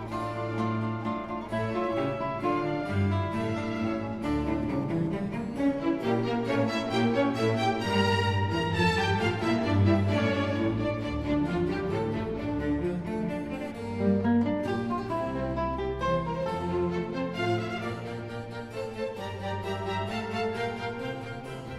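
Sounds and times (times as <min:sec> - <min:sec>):
concerto for guitar and string orchestra: 0:00.0 - 0:21.7.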